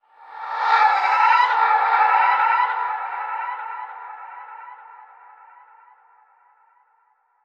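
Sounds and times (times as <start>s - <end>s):
dark ghostly shriek: 0.2s - 4.6s.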